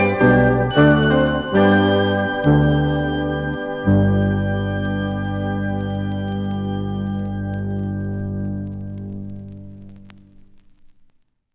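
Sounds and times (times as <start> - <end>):
classical minuet in G major: 0.0 - 8.6.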